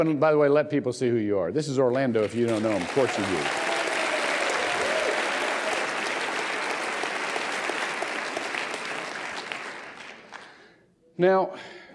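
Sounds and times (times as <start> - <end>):
speech: 0.0 - 3.7, 11.2 - 11.8
crowd clapping: 2.0 - 10.7.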